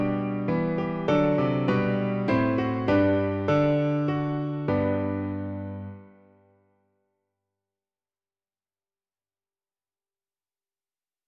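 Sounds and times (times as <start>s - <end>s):
piano: 0.0s - 6.7s.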